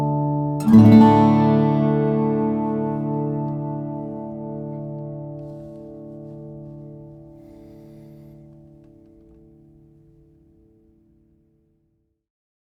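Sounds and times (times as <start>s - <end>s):
steel-string flattop guitar of Brazilian rosewood and redwood: 0.0s - 8.6s.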